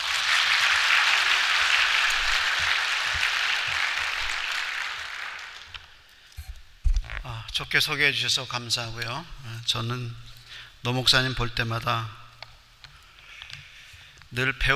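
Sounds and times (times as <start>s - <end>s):
crowd applause: 0.0s - 5.9s
speech: 7.6s - 12.2s, 14.3s - 14.7s.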